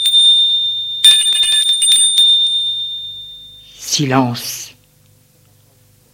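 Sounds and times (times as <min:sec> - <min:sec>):
doorbell ringing: 0:00.0 - 0:03.8
speech: 0:04.0 - 0:04.7.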